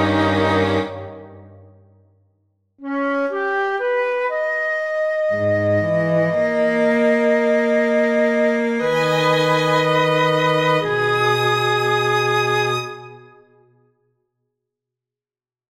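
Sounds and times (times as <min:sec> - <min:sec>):
prelude for flute and strings: 0:00.0 - 0:01.8, 0:02.8 - 0:13.6.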